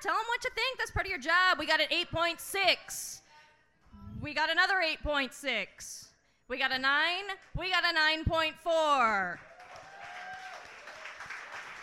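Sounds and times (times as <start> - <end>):
speech: 0.0 - 3.2, 4.2 - 9.5
crowd applauding: 9.4 - 11.8.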